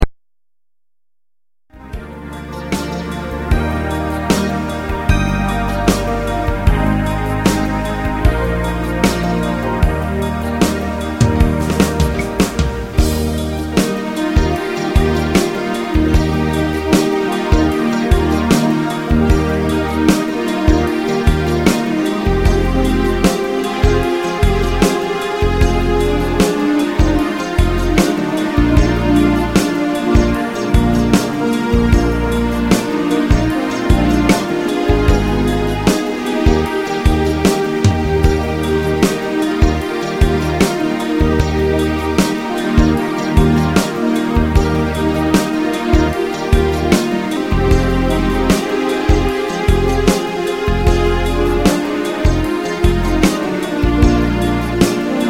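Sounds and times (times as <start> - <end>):
dreamy melody: 1.7 - 55.2.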